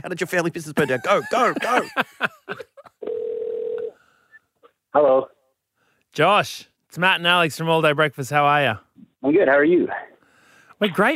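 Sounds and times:
speech: 0:00.0 - 0:02.7, 0:05.0 - 0:05.3, 0:06.2 - 0:10.1, 0:10.8 - 0:11.1
laughter: 0:00.6 - 0:03.0
telephone dialing tones for an international call: 0:03.0 - 0:03.9.

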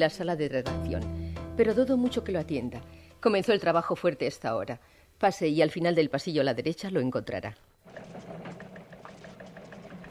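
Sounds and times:
speech: 0:00.0 - 0:07.7
typewriters clattering in a newsroom: 0:07.9 - 0:10.1.

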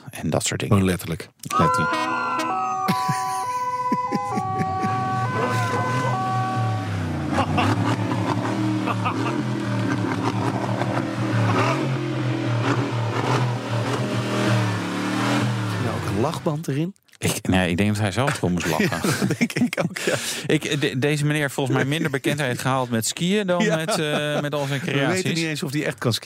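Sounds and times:
speech: 0:00.2 - 0:02.2, 0:16.2 - 0:26.2
stepped musical horn tones: 0:01.5 - 0:09.5
laughter: 0:02.7 - 0:06.3, 0:07.3 - 0:09.6, 0:11.4 - 0:11.9, 0:18.2 - 0:25.7
tuned AMG car engine revving: 0:04.4 - 0:16.6.

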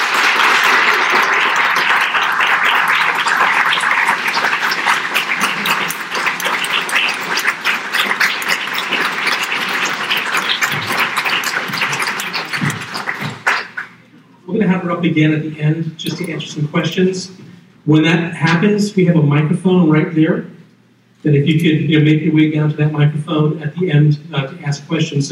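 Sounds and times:
audience applause: 0:00.0 - 0:14.0
speech: 0:15.0 - 0:20.5, 0:21.2 - 0:25.2.

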